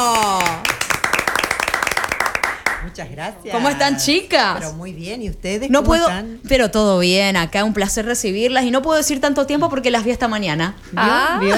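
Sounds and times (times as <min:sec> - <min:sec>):
audience applause: 0:00.0 - 0:02.9
speech: 0:03.0 - 0:11.5.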